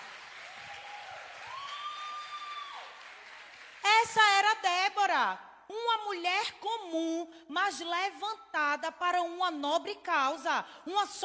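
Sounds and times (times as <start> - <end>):
audience applause: 0.0 - 3.8
speech: 4.0 - 11.2.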